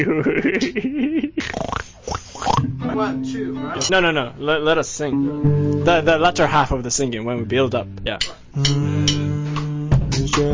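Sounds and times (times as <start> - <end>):
laughter: 0.0 - 1.5
speech: 0.0 - 1.8, 3.0 - 9.3, 10.4 - 10.5
fart during a band rehearsal: 1.4 - 2.7.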